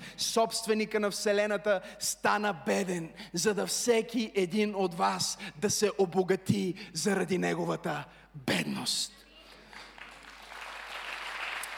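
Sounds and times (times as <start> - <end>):
speech: 0.3 - 9.2
audience clapping: 9.5 - 11.7.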